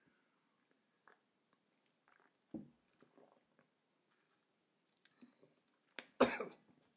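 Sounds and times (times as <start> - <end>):
person coughing after gulping a hot sweet mulled-wine-like drink too fast: 6.2 - 6.6.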